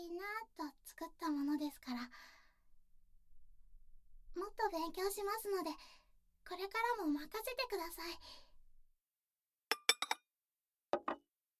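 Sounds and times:
speech: 0.4 - 2.4, 4.4 - 8.5
dishes clinking while clearing the table: 9.7 - 10.2.

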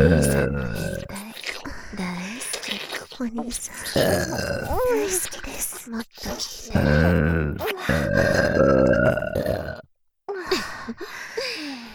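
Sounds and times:
speech: 0.0 - 0.9, 3.2 - 6.9
person burping: 0.0 - 1.1, 4.0 - 5.0, 6.7 - 9.9.

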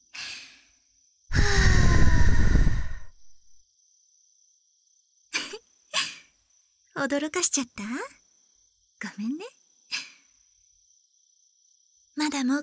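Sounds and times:
air blown into an ear to clear earwax: 1.3 - 3.4
speech: 7.0 - 8.2, 9.1 - 9.6, 12.4 - 12.6.

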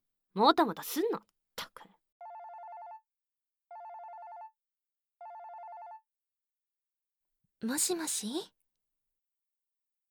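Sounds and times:
speech: 0.4 - 1.3, 7.6 - 8.6
telephone trilling rings during a call to a girlfriend: 2.2 - 3.1, 3.7 - 4.6, 5.2 - 6.1.

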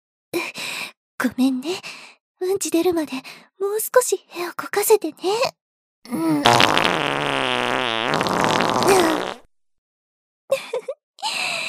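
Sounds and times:
speech: 1.2 - 9.3
fart: 6.4 - 9.5.

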